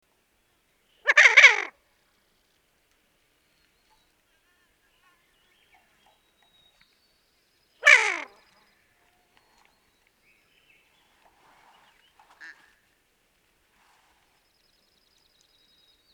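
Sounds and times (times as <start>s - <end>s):
Barrow's goldeneye croaking, Bucephala islandica: 1.1s - 1.7s, 7.8s - 8.4s, 12.4s - 12.7s.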